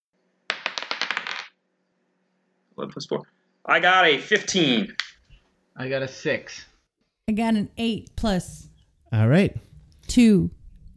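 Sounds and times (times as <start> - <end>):
dice rolled for a game of D&D: 0.5 - 1.6
speech: 2.8 - 5.1, 5.8 - 6.7, 7.3 - 10.9.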